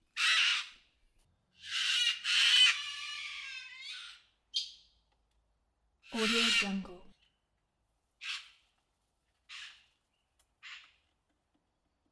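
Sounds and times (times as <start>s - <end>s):
cockatoo calling and screeching: 0.2s - 0.8s, 1.6s - 4.8s, 6.0s - 6.9s, 8.2s - 8.6s, 9.5s - 9.9s, 10.6s - 11.0s.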